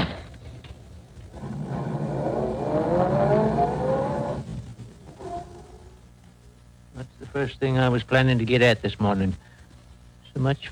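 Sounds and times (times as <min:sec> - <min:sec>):
car engine pulling away after dropping off a passenger: 0:00.0 - 0:06.0
speech: 0:07.4 - 0:09.5, 0:10.4 - 0:10.7.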